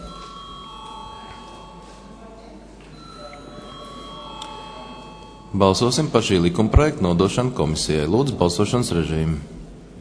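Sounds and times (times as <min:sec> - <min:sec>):
parliament voting bell ringing as a steady electronic tone: 0:00.0 - 0:02.3, 0:02.9 - 0:06.1
murmur of voices: 0:00.0 - 0:09.9
speech: 0:05.5 - 0:09.6.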